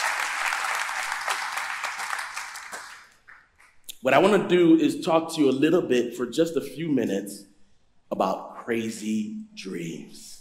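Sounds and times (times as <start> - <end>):
audience applause: 0.0 - 3.4
speech: 4.0 - 7.5, 8.1 - 10.4.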